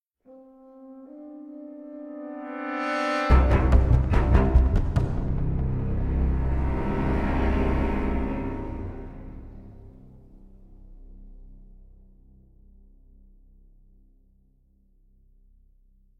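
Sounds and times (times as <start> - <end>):
string instrument: 1.9 - 12.2.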